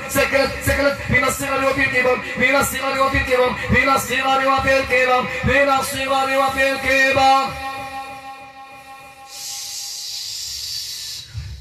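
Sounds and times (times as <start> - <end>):
speech: 0.3 - 7.7
snake hissing: 9.3 - 11.6.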